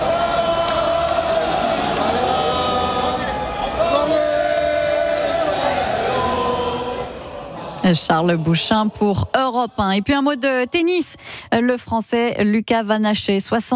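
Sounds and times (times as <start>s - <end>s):
crowd applause: 0.0s - 10.3s
speech: 7.9s - 13.7s.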